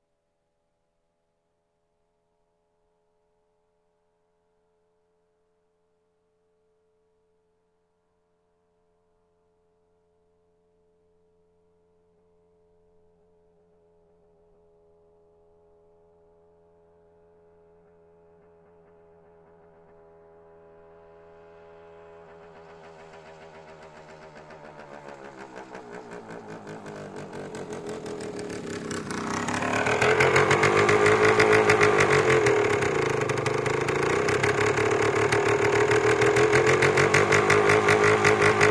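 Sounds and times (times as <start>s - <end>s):
motorcycle approaching and turning off: 16.9s - 38.6s.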